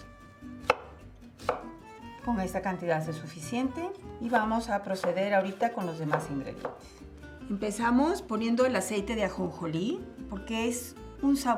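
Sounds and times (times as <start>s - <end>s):
knife chopping an onion on a cutting board: 0.6s - 1.7s, 4.9s - 7.0s
speech: 2.3s - 11.5s.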